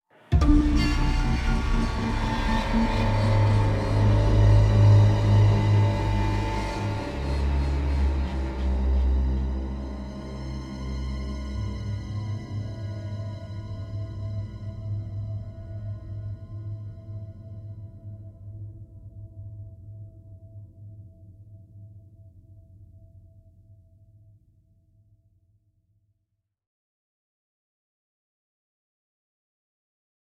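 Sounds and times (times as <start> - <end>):
classic horror sci-fi opening music: 0.3 - 21.2.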